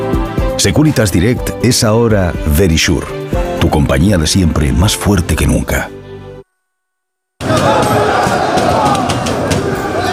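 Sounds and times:
speech: 0:00.6 - 0:06.0
crowd cheering and shouting on Paris night streets: 0:07.4 - 0:10.1.

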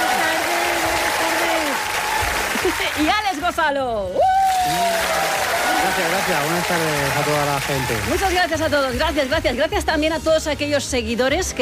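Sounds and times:
voices cheering: 0:00.0 - 0:03.3, 0:04.2 - 0:08.8
audience applauding a guest on a show: 0:00.0 - 0:03.6, 0:04.3 - 0:09.8
speech: 0:03.0 - 0:11.6.

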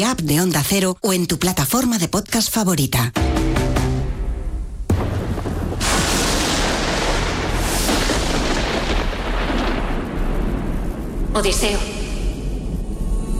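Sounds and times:
speech: 0:00.0 - 0:03.7, 0:11.4 - 0:12.0
thunder: 0:04.3 - 0:13.3.

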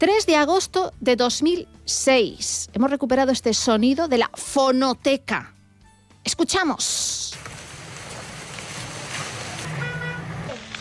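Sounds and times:
speech: 0:00.0 - 0:05.6, 0:06.2 - 0:07.6
crackling flames of a forest fire: 0:07.2 - 0:10.7.

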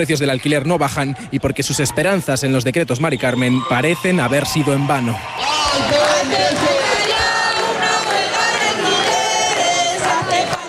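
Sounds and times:
speech: 0:00.0 - 0:06.8
large protest crowd chanting in unison: 0:05.3 - 0:10.6.

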